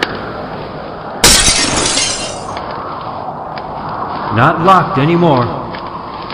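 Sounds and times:
dull rumbling noise: 0:00.0 - 0:06.3
glass shards tinkling: 0:01.2 - 0:02.6
window glass smashing: 0:01.2 - 0:02.6
speech: 0:04.4 - 0:05.6.

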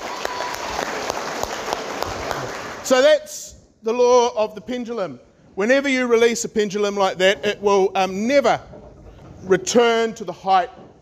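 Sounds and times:
crowd clapping: 0:00.0 - 0:02.9
speech: 0:02.9 - 0:08.8, 0:09.4 - 0:10.8.

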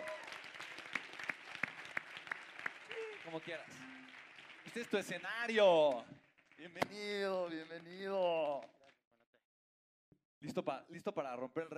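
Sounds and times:
audience applauding: 0:00.0 - 0:08.9
speech: 0:03.3 - 0:08.8, 0:10.4 - 0:11.7.

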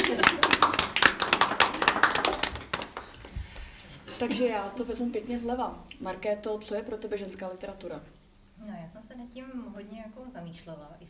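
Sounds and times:
audience applause: 0:00.0 - 0:03.4
speech: 0:04.2 - 0:11.0.

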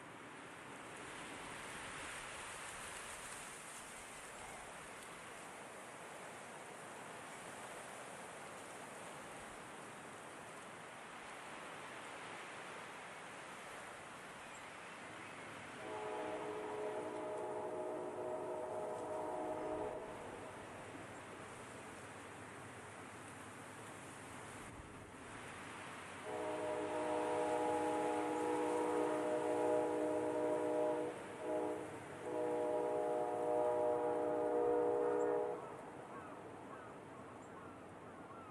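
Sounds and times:
wind blowing through grass: 0:00.0 - 0:38.4
train horn: 0:15.7 - 0:21.0, 0:26.2 - 0:36.4.

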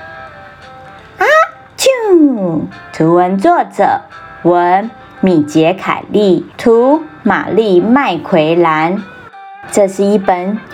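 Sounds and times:
voice imitating a sneeze: 0:01.2 - 0:01.6
speech: 0:02.4 - 0:10.7.

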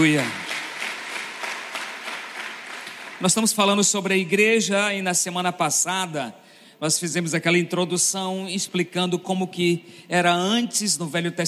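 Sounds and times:
speech: 0:00.0 - 0:00.4, 0:03.2 - 0:11.4
audience applause: 0:00.0 - 0:03.6.

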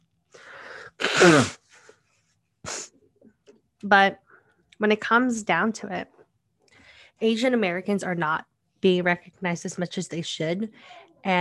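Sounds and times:
person blowing nose: 0:00.7 - 0:01.9, 0:02.6 - 0:03.0
speech: 0:01.2 - 0:01.6, 0:03.8 - 0:04.2, 0:04.8 - 0:06.2, 0:07.2 - 0:11.3.

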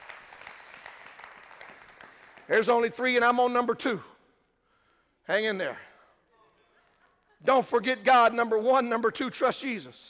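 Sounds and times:
audience applause hand clapping: 0:00.0 - 0:02.5
speech: 0:02.5 - 0:04.1, 0:05.3 - 0:05.9, 0:07.4 - 0:10.0.

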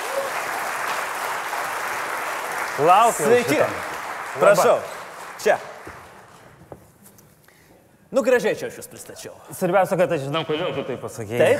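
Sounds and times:
audience applause: 0:00.0 - 0:06.3
speech: 0:02.8 - 0:05.7, 0:08.1 - 0:11.5.

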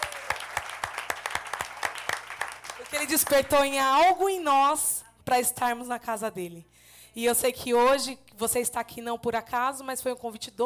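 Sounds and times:
audience clapping in rhythm: 0:00.0 - 0:03.7
speech: 0:02.9 - 0:10.6.

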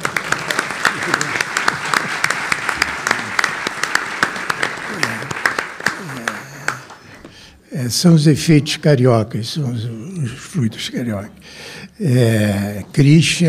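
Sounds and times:
crowd audience applause: 0:00.0 - 0:07.2
speech: 0:07.8 - 0:13.4.

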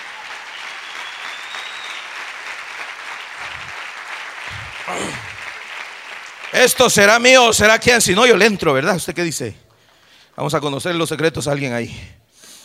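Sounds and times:
audience applause: 0:00.0 - 0:07.6
speech: 0:04.9 - 0:05.3, 0:06.5 - 0:09.6, 0:10.4 - 0:12.2.

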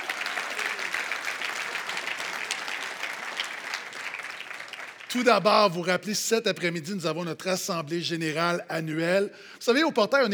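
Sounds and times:
church congregation applauding: 0:00.0 - 0:07.2
speech: 0:05.1 - 0:10.3.

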